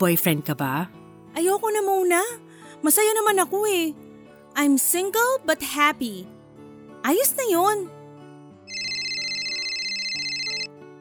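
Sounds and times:
speech: 0.0 - 4.0, 4.6 - 6.4, 7.0 - 8.0
phone ringing with an electronic ringtone: 8.7 - 10.7.

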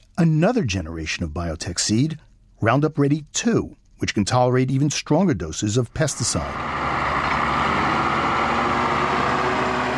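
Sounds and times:
speech: 0.2 - 7.0
road grader engine repairing a washed-out soy highway: 6.1 - 9.9.

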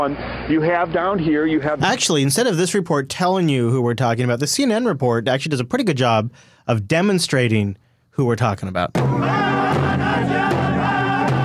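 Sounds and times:
speech: 0.0 - 10.6
drumbeats: 8.9 - 11.4
crowd cheering and singing: 9.0 - 11.4.

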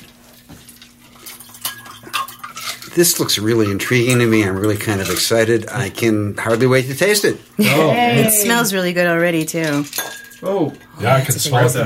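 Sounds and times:
spoon stirring a highball drink in a glass: 1.1 - 5.5, 9.6 - 10.9
speech: 3.0 - 11.8.

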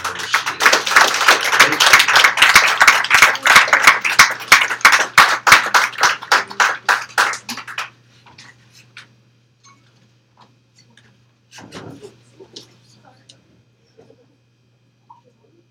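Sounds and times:
audience clapping and applause: 0.0 - 8.0.

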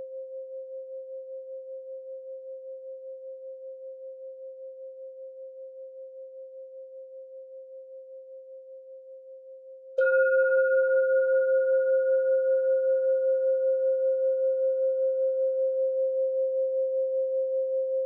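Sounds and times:
Tibetan sound bowl ringing: 10.0 - 17.9.

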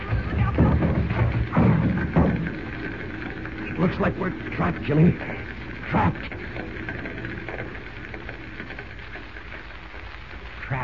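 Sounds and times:
door being broken in: 0.0 - 3.5
speech: 3.8 - 6.5.

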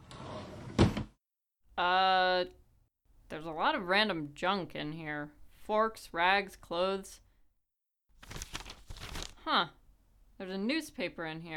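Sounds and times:
wooden dresser drawer pulled open: 0.0 - 1.2
speech: 3.4 - 7.2, 9.5 - 9.8, 10.4 - 11.5.

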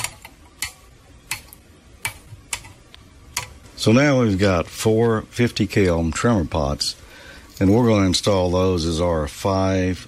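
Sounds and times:
wire cutters snipping off component leads: 0.0 - 3.6
faint hum: 0.0 - 10.0
speech: 3.8 - 7.0, 7.6 - 10.0.

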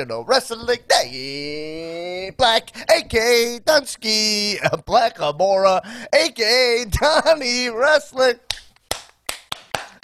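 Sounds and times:
drawn-out sing-song voice: 0.0 - 8.4
speech: 0.0 - 8.4
one person clapping hands: 8.5 - 10.0.

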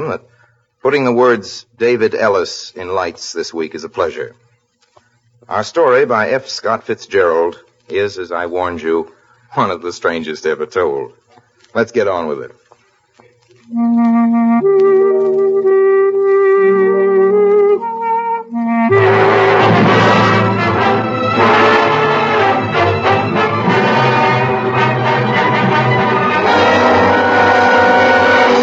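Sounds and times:
speech: 0.0 - 4.4, 5.5 - 12.6, 13.7 - 15.9
orchestral music with dense strings and brass: 13.7 - 28.6.

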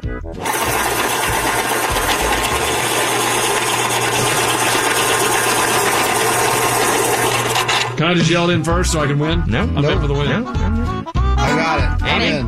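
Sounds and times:
speech: 0.1 - 0.9, 8.0 - 12.4
electric pencil sharpener: 0.4 - 8.0.

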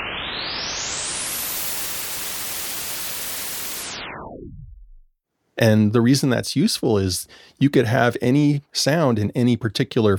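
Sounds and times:
white noise: 0.0 - 4.2
speech: 5.6 - 10.1.

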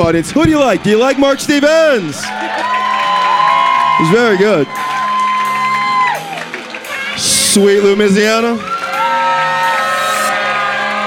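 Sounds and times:
speech: 0.0 - 2.7, 4.0 - 4.9, 7.6 - 8.7
crowd whooping and cheering: 2.0 - 7.2, 8.5 - 11.0
clapping: 2.2 - 7.5.

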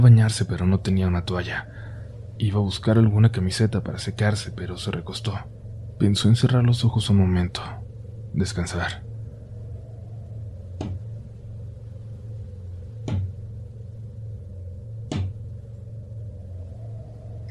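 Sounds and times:
speech: 0.0 - 1.8, 2.4 - 9.1
low hum: 0.0 - 17.4
knocking on a door: 13.1 - 13.3.

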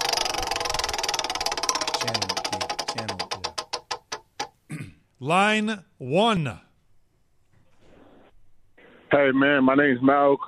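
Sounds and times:
roulette wheel spinning with pointer clicking: 0.0 - 4.6
speech: 2.0 - 3.1, 5.2 - 6.6, 9.1 - 10.4.

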